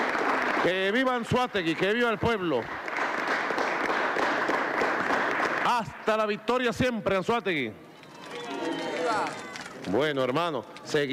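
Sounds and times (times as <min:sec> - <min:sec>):
crowd in Anzoátegui, Venezuela applauding at a public event: 0:00.0 - 0:06.0, 0:08.0 - 0:10.2
speech: 0:00.6 - 0:02.8, 0:05.7 - 0:07.8, 0:09.1 - 0:11.1.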